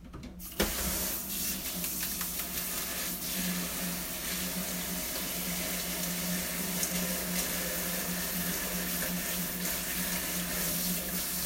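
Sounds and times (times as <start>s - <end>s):
kitchen running water: 0.4s - 11.4s.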